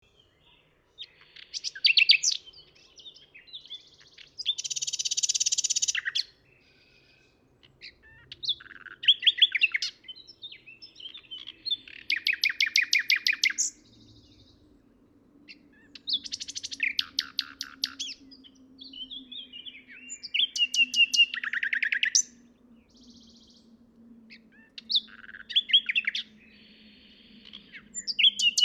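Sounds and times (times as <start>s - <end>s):
common nightingale song: 0.0s - 28.6s.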